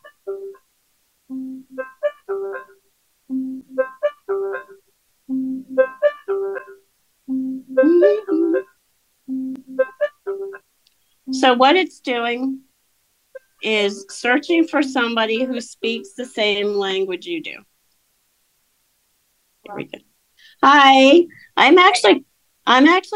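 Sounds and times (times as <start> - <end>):
phone app ringtone melody while searching: 0.0 - 0.6, 1.3 - 8.7, 9.3 - 10.6
speech: 11.4 - 12.6, 13.6 - 17.7, 19.7 - 20.0, 20.6 - 23.1.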